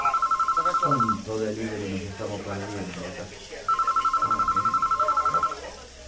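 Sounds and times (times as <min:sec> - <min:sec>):
telephone ringing: 0:00.0 - 0:01.6, 0:03.7 - 0:05.8
speech: 0:00.8 - 0:04.6.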